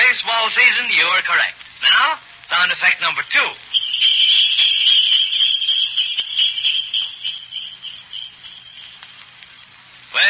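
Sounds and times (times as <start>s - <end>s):
speech: 0.5s - 3.7s
bells jingling: 3.8s - 9.2s.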